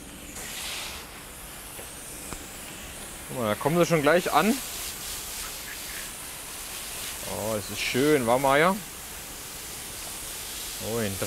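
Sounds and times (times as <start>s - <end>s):
water spraying from a shower hose: 0.0s - 11.2s
speech: 3.3s - 4.7s, 7.6s - 8.9s, 10.8s - 11.2s.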